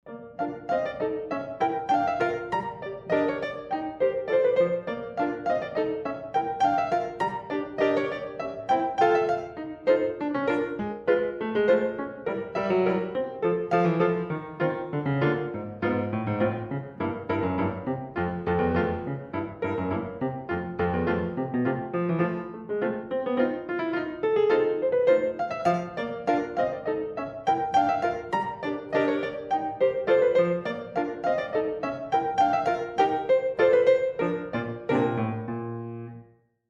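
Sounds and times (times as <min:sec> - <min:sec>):
polka music: 0:00.4 - 0:35.6.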